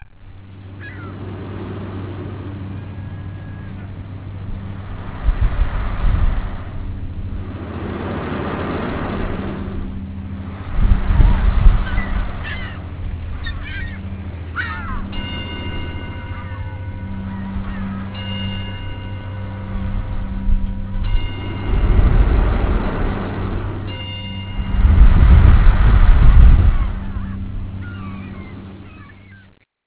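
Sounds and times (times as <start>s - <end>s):
water: 0.0s - 29.6s.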